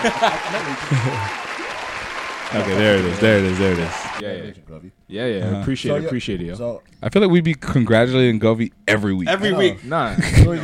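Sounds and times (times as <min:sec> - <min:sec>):
speech: 0:00.0 - 0:01.4, 0:02.5 - 0:10.6
laughter: 0:00.0 - 0:01.6, 0:09.9 - 0:10.6
round of applause: 0:00.0 - 0:04.2.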